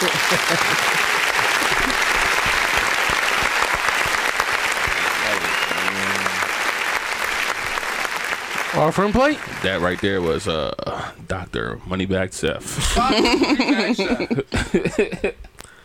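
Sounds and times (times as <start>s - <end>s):
laughter: 0.0s - 2.6s, 12.8s - 15.5s
applause: 0.0s - 10.4s
speech: 0.3s - 0.9s, 8.8s - 15.5s.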